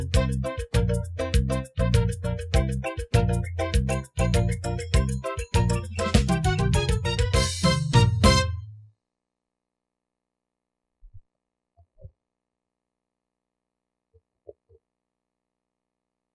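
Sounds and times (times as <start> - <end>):
music: 0.0 - 8.8.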